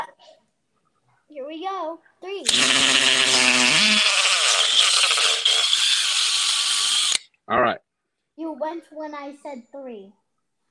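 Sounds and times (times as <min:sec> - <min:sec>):
speech: 0:01.3 - 0:04.1, 0:08.6 - 0:10.2
power drill running: 0:02.5 - 0:07.2.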